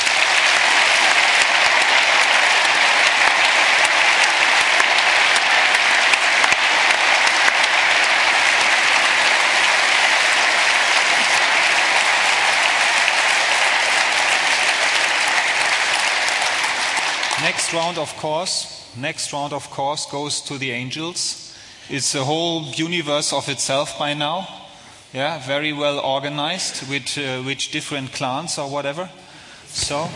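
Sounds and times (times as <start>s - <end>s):
audience applause: 0.0s - 18.2s
speech: 17.7s - 30.1s.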